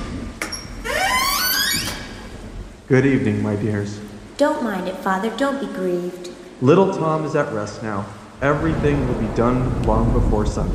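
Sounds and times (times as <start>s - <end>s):
door opening as a father arrives home: 0.0s - 2.5s
soft hiss: 0.0s - 10.7s
speech: 2.9s - 10.7s.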